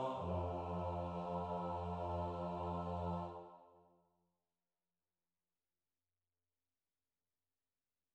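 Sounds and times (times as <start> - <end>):
bass: 0.2 - 3.3.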